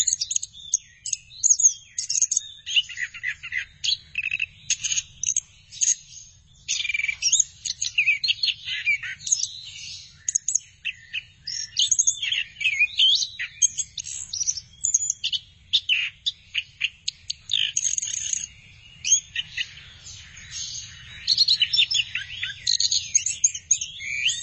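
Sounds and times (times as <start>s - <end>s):
thrush song: 0.0s - 24.4s.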